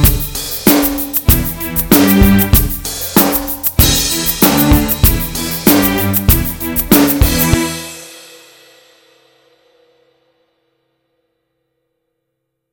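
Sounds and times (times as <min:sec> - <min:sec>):
rock with strings: 0:00.0 - 0:08.2.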